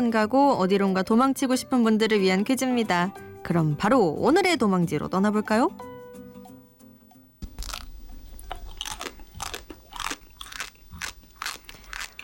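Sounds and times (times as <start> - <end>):
speech: 0.0 - 5.9
eating crunchy Dubai chocolate: 7.4 - 12.2.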